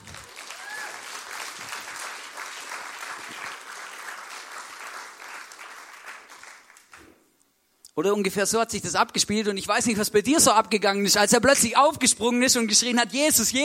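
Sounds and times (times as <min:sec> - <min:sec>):
audience applause: 0:00.0 - 0:07.0
speech: 0:08.0 - 0:13.6.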